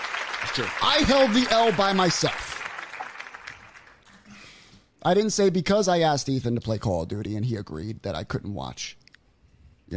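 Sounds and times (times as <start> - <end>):
applause: 0.0 - 4.2
speech: 0.4 - 2.5, 5.0 - 9.0.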